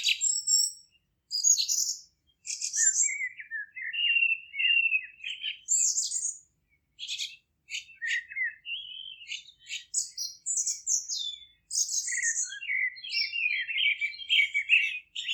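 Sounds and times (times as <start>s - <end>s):
birds singing in a Polish village garden: 0.0s - 15.3s.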